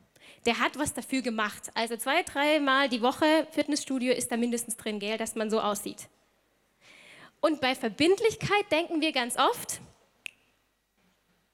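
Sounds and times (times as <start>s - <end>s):
hiss: 0.0s - 1.2s, 4.3s - 8.4s, 9.7s - 11.5s
speech: 0.4s - 6.2s, 7.4s - 9.9s
finger snap: 10.2s - 10.5s.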